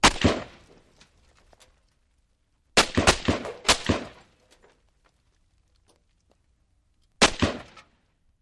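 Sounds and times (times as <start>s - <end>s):
M-16 rifle single shots: 0.0s - 0.8s, 2.8s - 4.4s, 7.2s - 7.9s.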